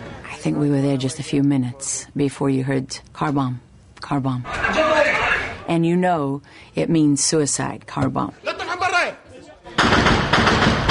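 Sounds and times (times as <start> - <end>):
speech: 0.4 - 4.9, 5.7 - 8.5
hail of gunfire from many guns: 9.8 - 10.8.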